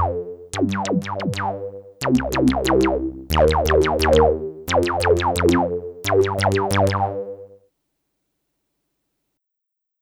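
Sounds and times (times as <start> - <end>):
Roland System-8 and JP-08 synthesizers: 0.0 - 7.6.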